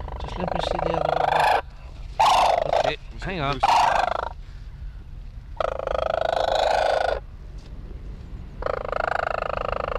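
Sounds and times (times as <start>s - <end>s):
Sarus crane trumpeting calls: 0.0s - 4.4s, 5.6s - 7.3s, 8.6s - 9.9s
speech: 0.3s - 1.1s, 3.2s - 4.0s.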